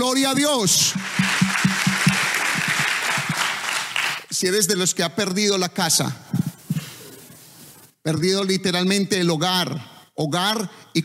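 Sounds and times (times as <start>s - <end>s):
speech: 0.0s - 1.5s, 4.4s - 6.4s, 8.0s - 11.0s
low rhythmic thumps: 0.3s - 4.0s
audience applause: 0.8s - 4.3s.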